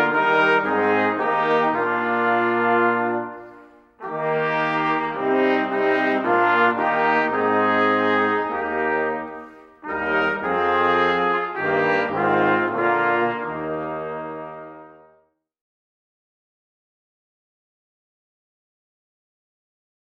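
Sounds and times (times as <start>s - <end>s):
fanfare: 0.0s - 15.2s.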